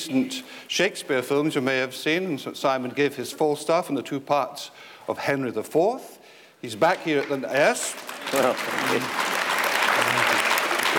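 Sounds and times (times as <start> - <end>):
speech: 0.0 - 9.3
audience applause: 7.2 - 10.9.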